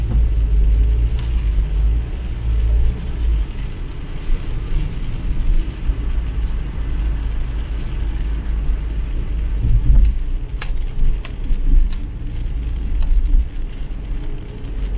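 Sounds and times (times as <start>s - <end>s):
car rumbling while driving in the rain: 0.0s - 14.9s
rain hissing: 0.0s - 14.9s
sharp ticks and clicks: 9.4s - 14.9s.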